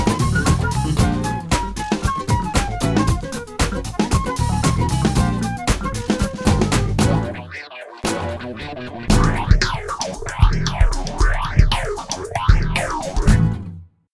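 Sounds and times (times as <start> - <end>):
Latin wah wah funk music: 0.0 - 13.7.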